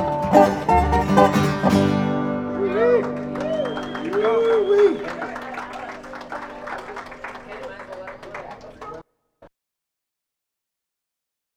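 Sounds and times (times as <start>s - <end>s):
dobro instrumental: 0.0s - 4.6s.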